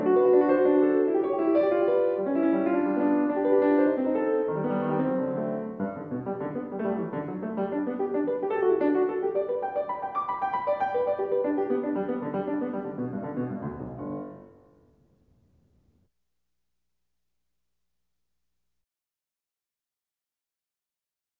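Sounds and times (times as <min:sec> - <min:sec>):
piano left hand playing a gigue: 0:00.0 - 0:14.5.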